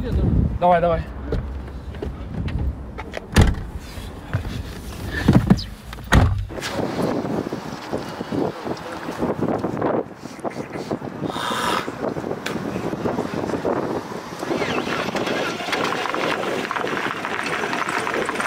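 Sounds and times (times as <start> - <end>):
speech: 0.0 - 1.1
wind noise: 0.0 - 18.4
car doors shutting: 1.3 - 4.6, 5.2 - 6.8.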